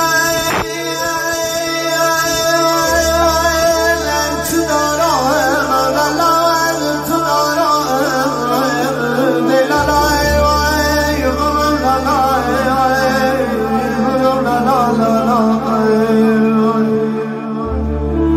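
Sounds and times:
person singing Kurdish hore: 0.0 - 18.3.

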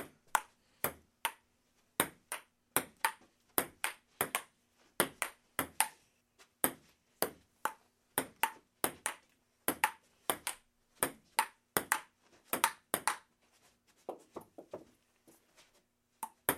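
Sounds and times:
ping pong ball bouncing: 0.3 - 6.0, 6.6 - 13.3, 16.2 - 16.5.

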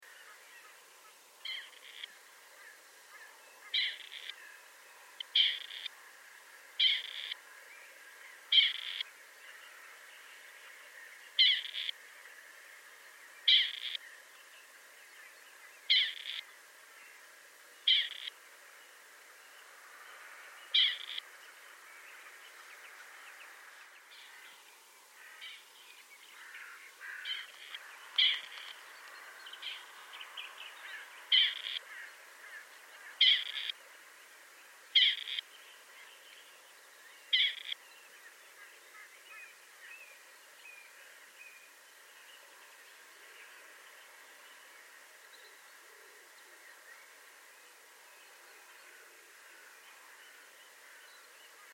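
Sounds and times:
partridge calling: 1.4 - 2.1, 3.6 - 4.4, 5.2 - 5.9, 6.8 - 7.4, 8.5 - 9.0, 11.4 - 12.0, 13.5 - 14.0, 15.9 - 16.5, 17.9 - 18.3, 20.7 - 21.2, 26.4 - 28.8, 31.3 - 32.6, 33.2 - 33.8, 35.0 - 35.4, 37.3 - 37.8.

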